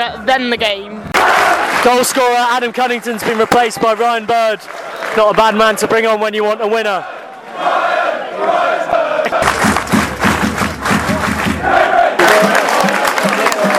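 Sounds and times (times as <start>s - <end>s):
speech: 0.0s - 8.5s
rapturous applause in the Newmarket Road End for goalkeeping save: 1.2s - 6.5s, 9.3s - 13.7s.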